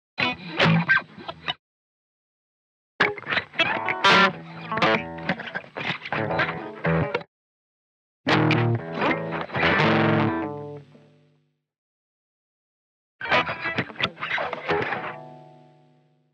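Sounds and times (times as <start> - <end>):
distorted electric guitar pickup: 0.2 - 1.6, 3.0 - 7.3, 8.3 - 11.2, 13.2 - 15.9.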